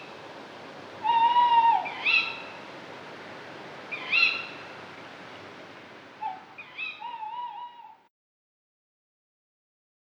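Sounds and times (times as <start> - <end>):
Tawny Owl birdsong: 0.0 - 8.0.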